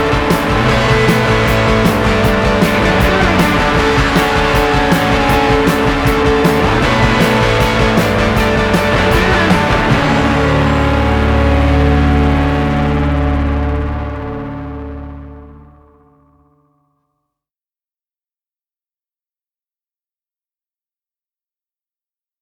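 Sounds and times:
disco music: 0:00.0 - 0:13.4.

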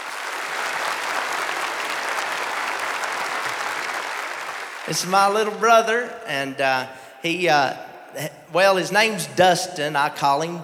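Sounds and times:
audience applause welcoming a musician: 0:00.0 - 0:05.6
speech: 0:04.9 - 0:10.6.

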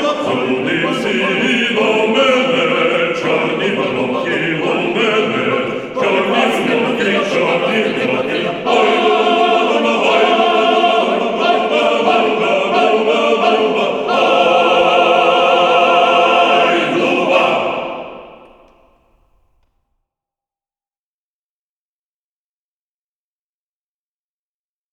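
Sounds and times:
male choir singing: 0:00.0 - 0:19.3.

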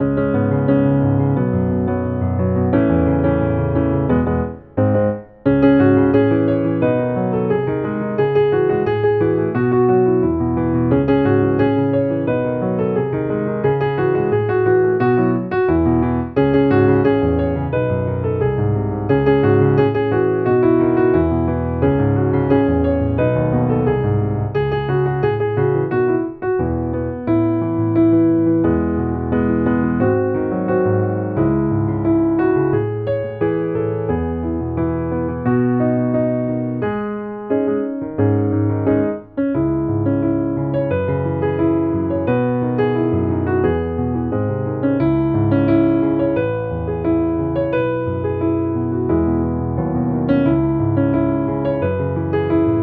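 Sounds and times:
piano: 0:00.0 - 0:52.8.

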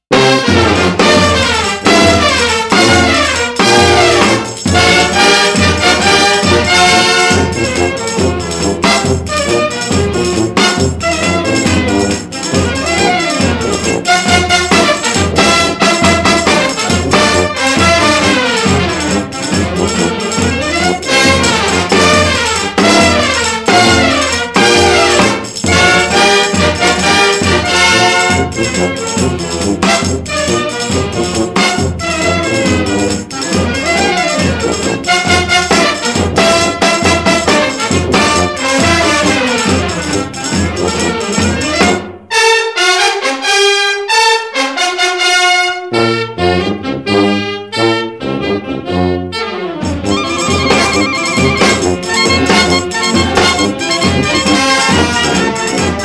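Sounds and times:
municipal band playing: 0:00.0 - 0:56.0.

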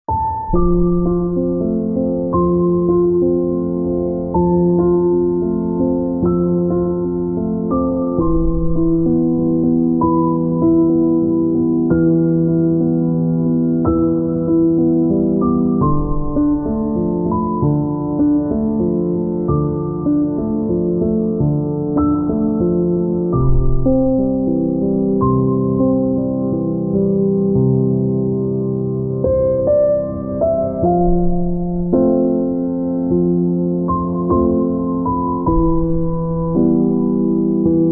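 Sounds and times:
piano: 0:00.0 - 0:37.8.

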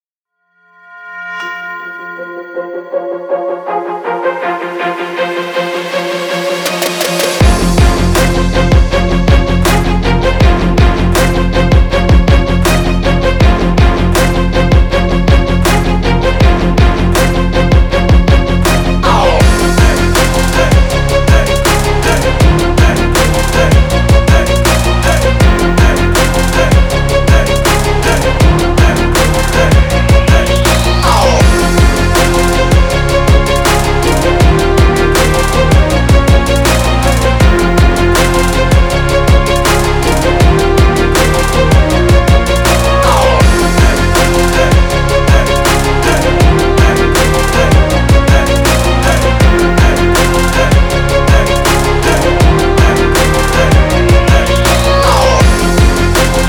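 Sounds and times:
orchestral hip hop: 0:00.8 - 0:56.4.

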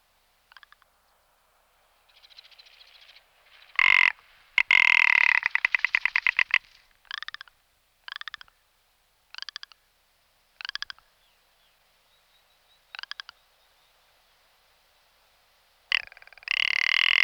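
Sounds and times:
rock ptarmigan rattling call: 0:03.8 - 0:07.5, 0:15.9 - 0:17.2.

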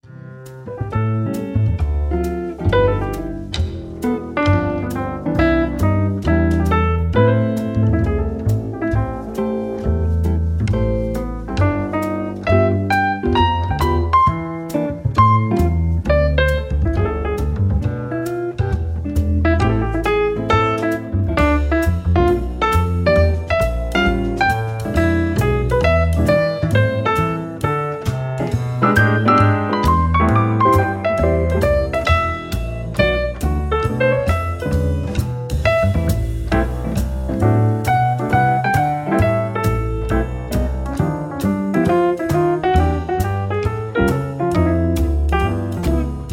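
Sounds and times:
smooth jazz in a Paris nightclub: 0:00.0 - 0:46.3.

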